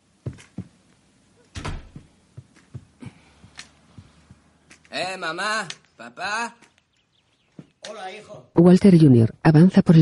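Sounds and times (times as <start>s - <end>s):
door closing: 1.5s - 2.1s
speech: 5.0s - 6.6s, 7.9s - 9.9s.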